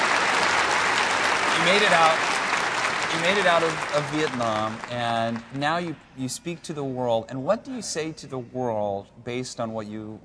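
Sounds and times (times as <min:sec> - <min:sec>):
audience clapping at an interview event: 0:00.0 - 0:05.9
speech: 0:01.6 - 0:02.3, 0:03.1 - 0:10.2.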